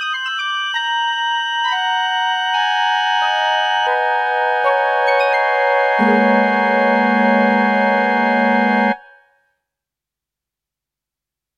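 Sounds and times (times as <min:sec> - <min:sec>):
flutes: 0:00.1 - 0:09.4.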